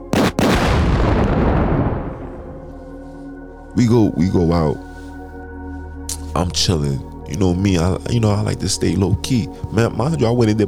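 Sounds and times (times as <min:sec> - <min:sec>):
bomb-drop explosion sound effect: 0:00.1 - 0:02.7
speech: 0:03.8 - 0:04.9, 0:06.4 - 0:10.6.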